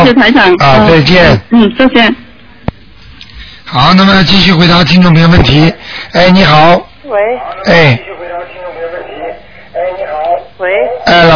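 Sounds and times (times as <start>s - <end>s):
speech: 0.1s - 2.2s, 3.7s - 9.0s, 9.8s - 11.3s
echo from a listener's radio on the phone: 7.1s - 11.1s.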